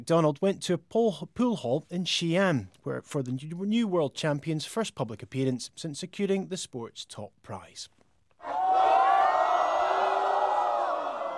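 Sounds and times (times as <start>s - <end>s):
speech: 0.0s - 8.6s
crowd cheering to welcome a world champion at TNT pool hall in Xi'an: 8.4s - 11.3s.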